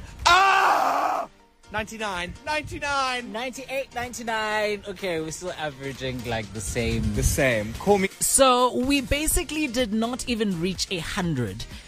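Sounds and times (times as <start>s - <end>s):
man screaming: 0.2s - 1.3s
speech: 1.7s - 11.8s.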